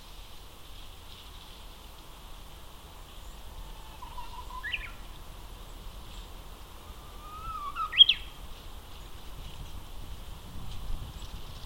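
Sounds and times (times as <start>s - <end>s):
Japanese bush warbler song: 0.0s - 11.6s.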